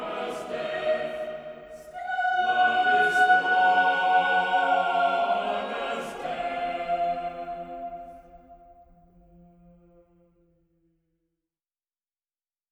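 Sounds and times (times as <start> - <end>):
choir singing: 0.0 - 9.0.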